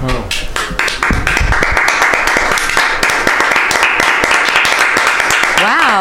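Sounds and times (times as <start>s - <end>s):
studio audience applause: 0.3s - 5.9s.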